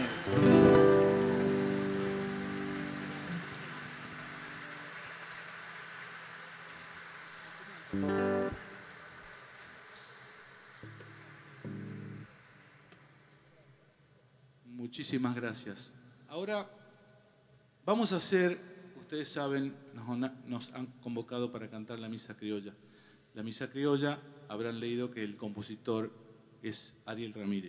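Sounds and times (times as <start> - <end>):
audience applause for dancers: 0.0 - 13.6
speech: 14.9 - 16.8, 17.9 - 27.6.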